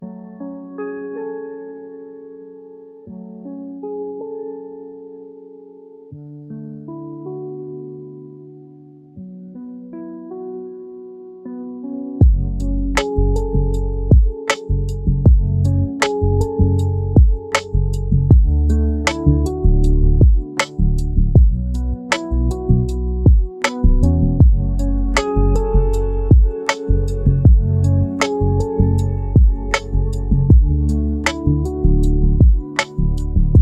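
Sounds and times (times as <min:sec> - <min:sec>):
lofi focus music: 0:12.2 - 0:16.6, 0:17.2 - 0:19.6, 0:20.2 - 0:22.7, 0:23.3 - 0:33.5.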